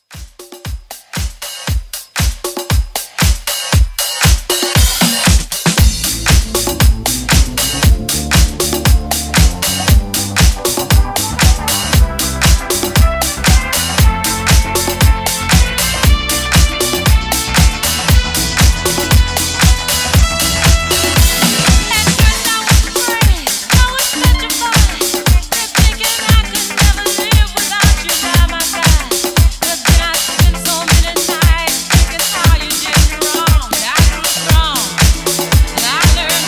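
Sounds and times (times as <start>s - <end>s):
70s disco drums: 0.0s - 36.4s.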